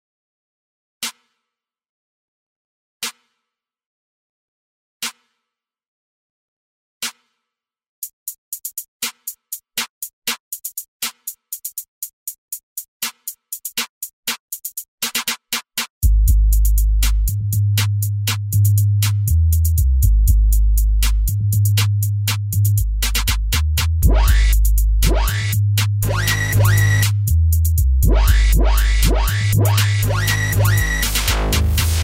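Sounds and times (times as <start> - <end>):
trap beat: 8.0 - 15.3, 16.1 - 32.0.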